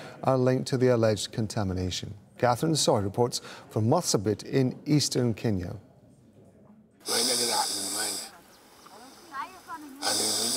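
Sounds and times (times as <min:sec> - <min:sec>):
speech: 0:00.2 - 0:05.9
man with throat cancer breathing and voicing through a tracheostomy pipe: 0:07.0 - 0:09.4, 0:10.0 - 0:10.5.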